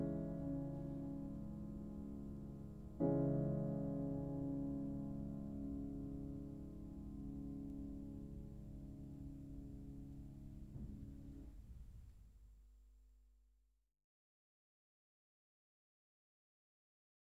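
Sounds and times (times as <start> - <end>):
piano sonata in C-sharp minor: 0.0 - 12.1.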